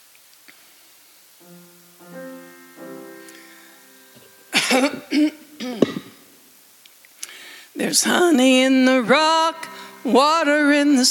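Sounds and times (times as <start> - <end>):
speech: 1.4 - 2.2, 4.7 - 6.0, 7.8 - 11.0
throat clearing: 5.6 - 6.2.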